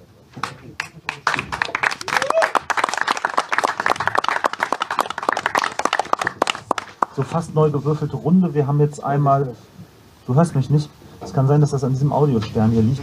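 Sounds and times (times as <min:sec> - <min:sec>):
audience applause for departing guests: 0:00.4 - 0:07.3
speech: 0:07.2 - 0:09.7, 0:10.3 - 0:13.0.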